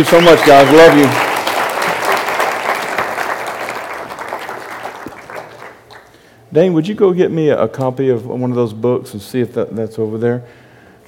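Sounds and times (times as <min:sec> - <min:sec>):
speech: 0:00.0 - 0:01.4, 0:06.5 - 0:10.6
audience giving a hand clap: 0:00.0 - 0:06.2.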